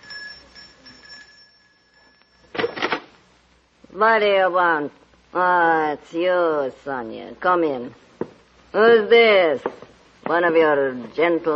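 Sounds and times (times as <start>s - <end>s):
doorbell ringing: 0.0s - 2.6s
speech: 3.9s - 8.0s, 8.7s - 11.5s.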